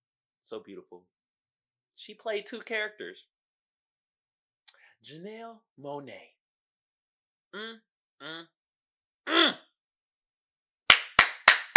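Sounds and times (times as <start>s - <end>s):
speech: 0.5s - 1.2s, 2.0s - 3.3s, 5.0s - 6.4s, 7.5s - 8.6s
audience hand clapping: 10.9s - 11.7s.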